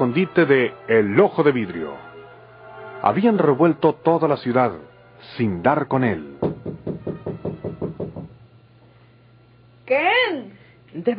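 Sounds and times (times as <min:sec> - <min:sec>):
speech: 0:00.0 - 0:02.1, 0:03.0 - 0:06.9, 0:09.9 - 0:11.1
knocking on a door: 0:06.4 - 0:08.4.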